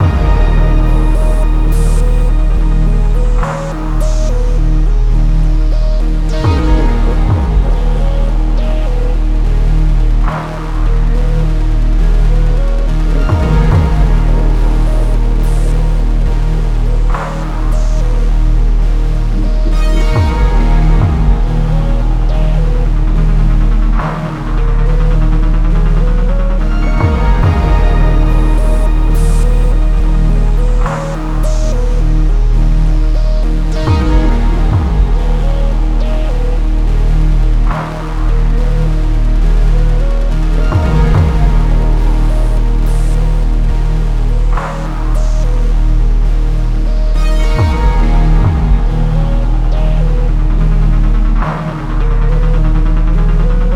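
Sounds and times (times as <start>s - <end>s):
pre boss fight game music loop: 0.0s - 53.7s.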